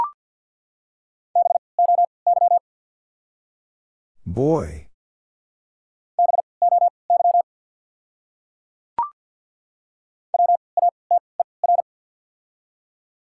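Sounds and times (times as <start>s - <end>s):
Morse code beeps in a mid-pitched tone: 1.4s - 2.6s, 6.2s - 7.4s, 10.4s - 11.8s
speech: 4.3s - 4.8s.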